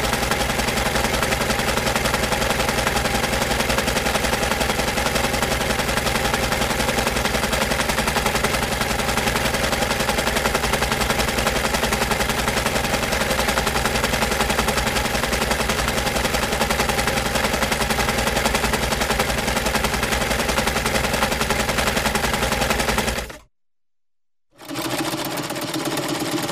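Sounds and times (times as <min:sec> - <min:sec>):
electric sewing machine: 0:00.0 - 0:23.5, 0:24.6 - 0:26.4.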